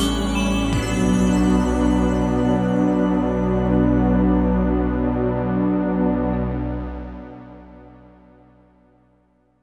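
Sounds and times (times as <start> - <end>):
synth pads: 0.0 - 8.5.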